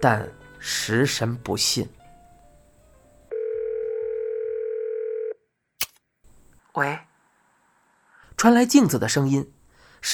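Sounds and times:
speech: 0.0 - 2.0, 6.8 - 7.1, 8.4 - 10.1
telephone dial tone while calling a mobile: 3.3 - 5.4.

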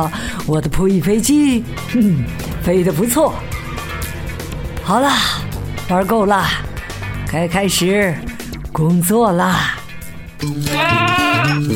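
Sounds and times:
speech: 0.0 - 3.5, 4.9 - 6.7, 7.3 - 9.8, 10.4 - 11.7
sheep bleating: 10.7 - 11.6.

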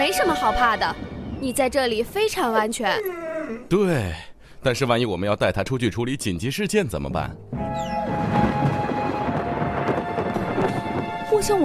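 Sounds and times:
thunder rumbling: 0.0 - 2.8, 7.5 - 11.6
speech: 0.0 - 8.0, 11.4 - 11.6.

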